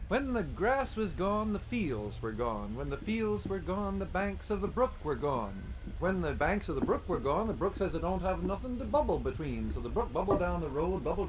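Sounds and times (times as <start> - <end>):
speech: 0.1 - 11.2
rusty barn door hinge creaking: 5.7 - 11.2.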